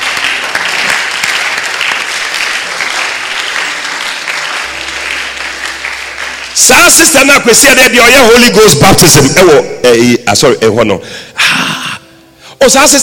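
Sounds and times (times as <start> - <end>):
crowd clapping: 0.0 - 8.4
speech: 6.6 - 11.7, 12.6 - 13.0.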